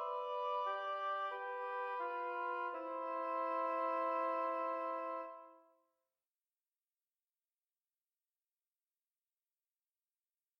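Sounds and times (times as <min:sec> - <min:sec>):
beginning oboe duet in C major: 0:00.0 - 0:05.6.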